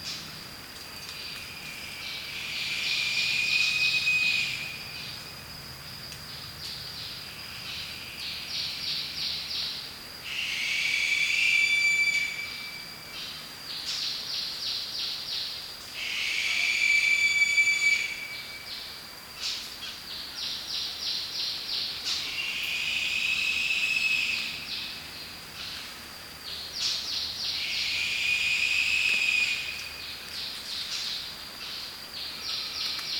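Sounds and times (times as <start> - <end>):
lesser sooty owl Tyto multipunctata whistle: 2.3 - 5.0, 10.2 - 12.9, 16.0 - 18.8, 22.2 - 24.8, 27.5 - 29.9.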